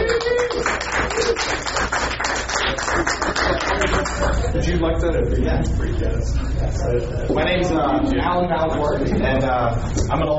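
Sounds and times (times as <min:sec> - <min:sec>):
audience applause: 0:00.0 - 0:04.4
speech: 0:04.8 - 0:10.3.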